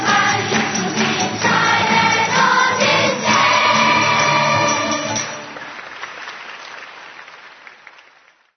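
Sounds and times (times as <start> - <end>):
children singing Christmas carols: 0.0 - 5.4.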